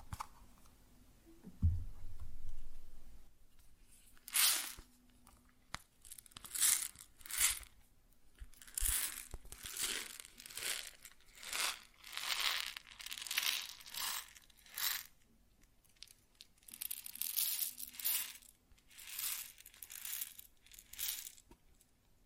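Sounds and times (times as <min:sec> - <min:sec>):
faint steady low hum: 0:00.0 - 0:04.2
low thump: 0:01.4 - 0:03.0
pouring rustling grain: 0:04.3 - 0:04.8, 0:08.6 - 0:15.1, 0:16.7 - 0:21.4.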